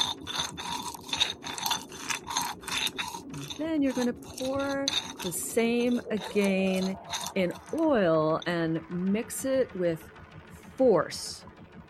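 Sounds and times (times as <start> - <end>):
crushing and grinding cardamom with sugar: 0.0 - 8.6
speech: 3.6 - 10.2, 10.8 - 11.5.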